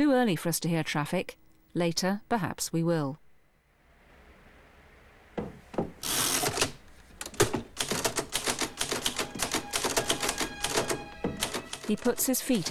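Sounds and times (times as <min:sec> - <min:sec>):
speech: 0:00.0 - 0:03.2, 0:11.9 - 0:12.6
typewriter typing: 0:06.0 - 0:12.6.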